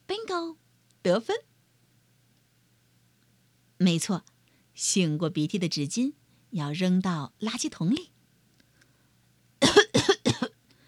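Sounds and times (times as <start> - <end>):
speech: 0.3 - 1.5, 3.8 - 8.2
harsh raspy coughs: 9.6 - 10.5.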